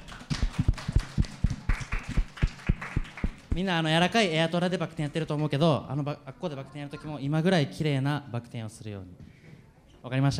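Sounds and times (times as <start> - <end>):
small group hand clapping: 0.0 - 3.8
speech: 3.6 - 9.3, 10.0 - 10.3.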